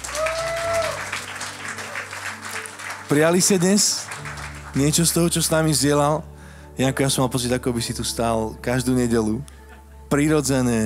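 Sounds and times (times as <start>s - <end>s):
church audience applauding to honour a speaker: 0.0s - 5.3s
speech: 3.1s - 10.8s.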